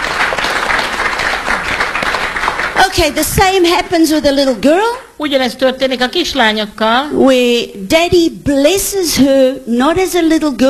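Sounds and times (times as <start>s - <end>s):
church congregation applauding performers: 0.0s - 3.0s
speech: 2.8s - 10.6s.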